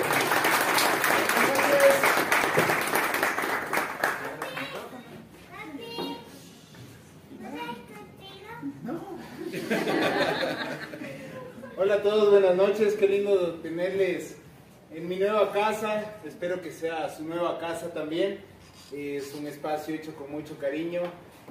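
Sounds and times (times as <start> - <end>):
audience applause: 0.0 - 4.9
laughter: 9.2 - 11.8
speech: 12.0 - 14.4, 15.0 - 21.4.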